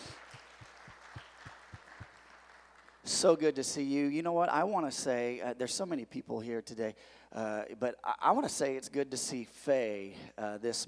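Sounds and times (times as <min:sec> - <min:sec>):
crowd applauding: 0:00.0 - 0:03.3
speech: 0:03.2 - 0:10.8.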